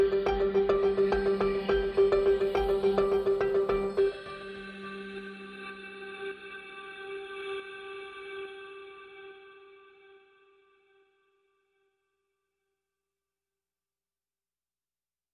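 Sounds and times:
synth pads: 0.0 - 9.5.

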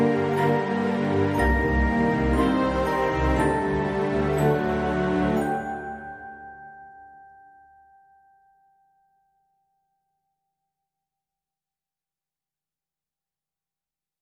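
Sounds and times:
orchestral music: 0.0 - 6.6.

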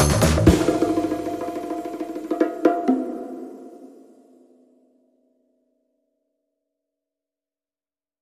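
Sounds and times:
funk music: 0.0 - 4.0.

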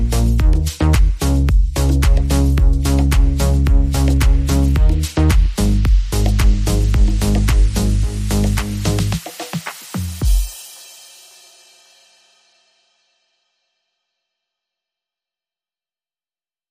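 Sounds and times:
bass: 0.0 - 9.3
drums: 0.0 - 12.9.

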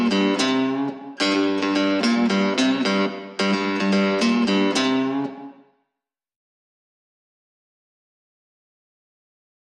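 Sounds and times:
guitar: 0.0 - 5.9.

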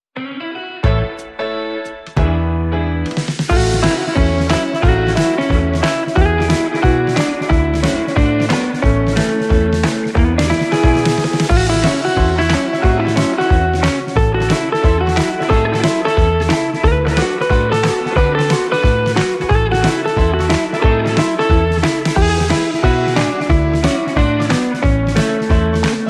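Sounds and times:
jive boogie guitar: 0.2 - 26.0.

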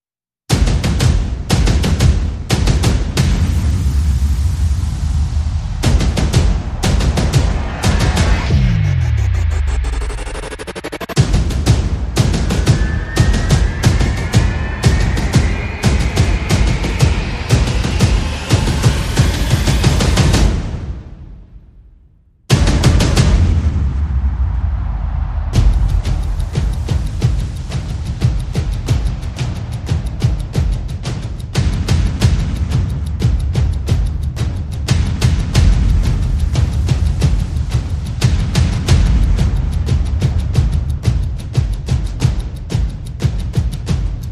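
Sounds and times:
percussion: 0.5 - 44.3
sound effects: 3.4 - 20.5.

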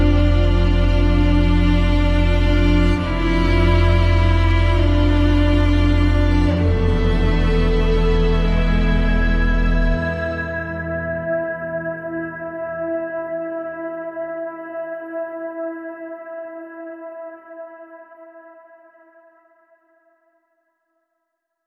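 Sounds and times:
sad strings and pads: 0.0 - 18.7.

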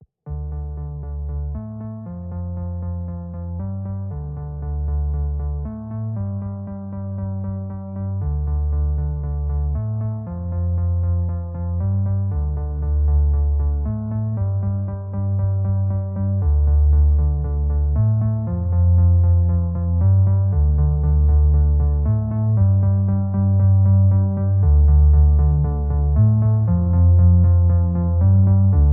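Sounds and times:
underscore music: 0.3 - 28.9.

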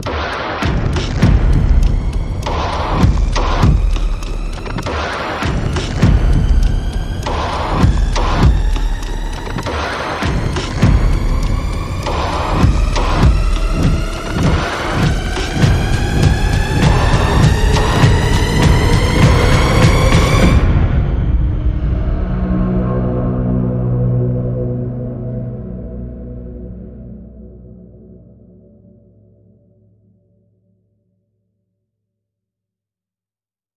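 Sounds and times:
percussion: 0.0 - 24.5
sound effects: 0.0 - 27.4.

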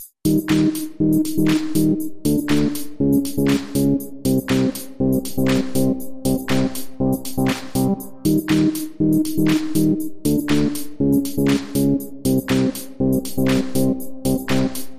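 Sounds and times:
instrumental without beat: 0.0 - 14.9.

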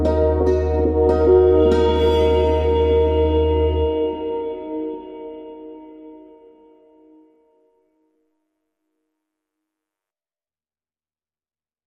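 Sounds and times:
Alpine ambience: 0.0 - 7.2
underscore music: 0.0 - 7.2.

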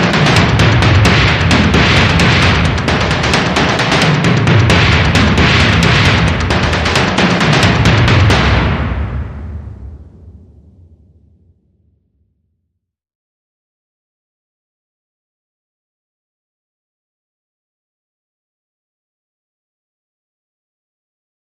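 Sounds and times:
mid drums: 0.0 - 11.1.

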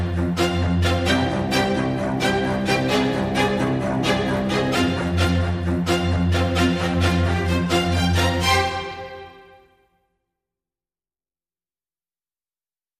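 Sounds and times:
string instruments mix: 0.0 - 9.7.

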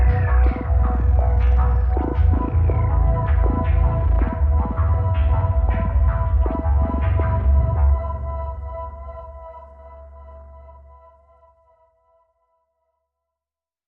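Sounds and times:
rhythm synth: 0.0 - 9.4.

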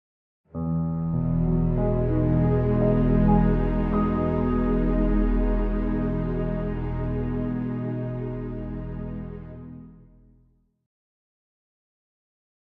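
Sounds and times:
underscore music with strings: 0.7 - 10.3.

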